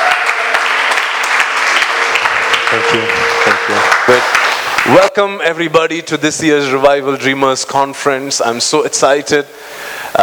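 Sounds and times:
audience applause greeting a pastor at a revival conference: 0:00.0 - 0:05.1
speech: 0:02.8 - 0:04.3, 0:04.9 - 0:09.6.

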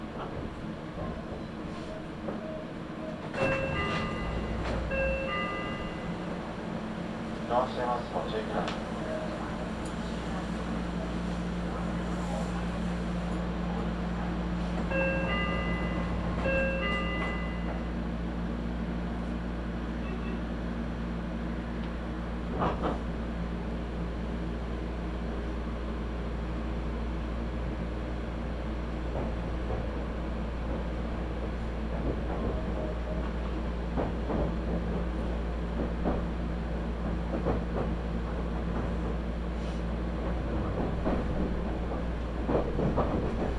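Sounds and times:
Meitetsu Nishio Line train interior rumble and hum: 0:00.0 - 0:43.5
rail clicks and clunks: 0:02.3 - 0:18.0, 0:21.8 - 0:23.1, 0:29.0 - 0:43.5.

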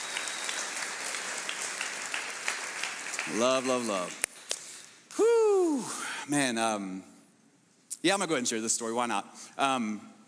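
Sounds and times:
church congregation clapping to welcome first-time visitors: 0:00.0 - 0:04.8
speech: 0:03.3 - 0:04.2, 0:05.2 - 0:07.1, 0:08.0 - 0:10.1.

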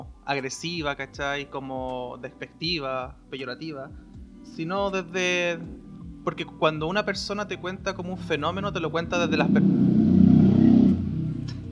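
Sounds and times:
speech: 0:00.0 - 0:10.0
motorcycle engine revving: 0:04.2 - 0:11.7.

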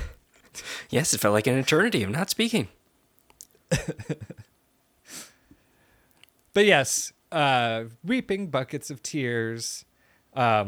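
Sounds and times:
speech: 0:00.6 - 0:02.8, 0:03.8 - 0:04.4, 0:06.6 - 0:10.6
person clearing throat: 0:03.7 - 0:04.4.

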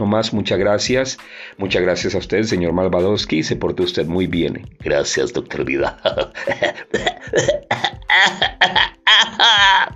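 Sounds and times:
speech: 0:00.1 - 0:09.9
person in a harsh coughing fit: 0:05.8 - 0:09.9.

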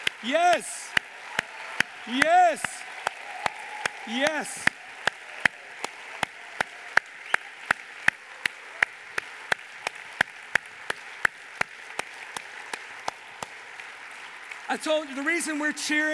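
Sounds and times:
audience cheering and clapping: 0:00.0 - 0:16.1
speech: 0:00.2 - 0:01.0, 0:02.0 - 0:02.8, 0:04.1 - 0:04.7, 0:14.7 - 0:16.1.

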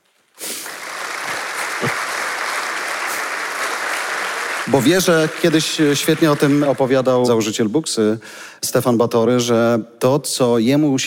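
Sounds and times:
audience applause: 0:00.4 - 0:07.5
speech: 0:04.7 - 0:11.0.

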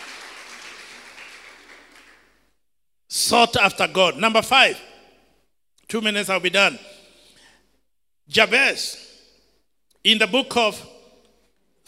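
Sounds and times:
audience clapping: 0:00.0 - 0:02.6
speech: 0:03.2 - 0:04.9, 0:05.9 - 0:06.9, 0:08.3 - 0:09.1, 0:10.0 - 0:10.9.

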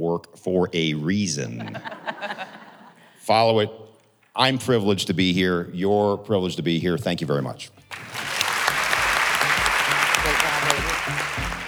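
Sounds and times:
speech: 0:00.1 - 0:02.4, 0:03.2 - 0:03.8, 0:04.4 - 0:08.1
laughter: 0:00.8 - 0:03.7, 0:04.6 - 0:11.6
audience applause: 0:07.9 - 0:11.6.

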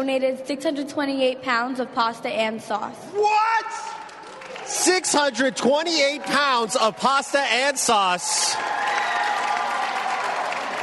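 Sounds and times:
speech: 0:00.0 - 0:04.0, 0:04.7 - 0:09.0
crowd thunderous applause: 0:03.9 - 0:10.8.

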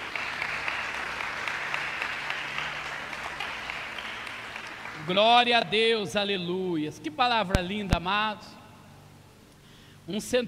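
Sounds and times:
audience applause: 0:00.0 - 0:05.6
speech: 0:05.0 - 0:08.6, 0:10.1 - 0:10.4.

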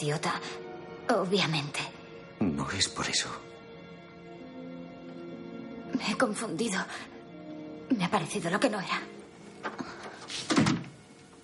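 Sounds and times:
speech: 0:00.0 - 0:03.5, 0:05.9 - 0:07.2, 0:07.9 - 0:10.7
door closing quietly in a thriller film scene: 0:09.6 - 0:11.0.

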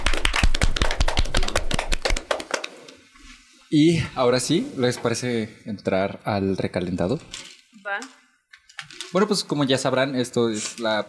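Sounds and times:
small group clapping: 0:00.0 - 0:03.0
speech: 0:03.7 - 0:08.2, 0:09.1 - 0:11.0.

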